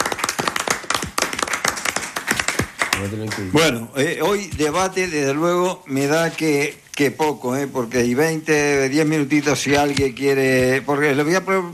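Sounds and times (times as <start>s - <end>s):
audience applause: 0.0s - 3.6s
speech: 3.0s - 11.7s.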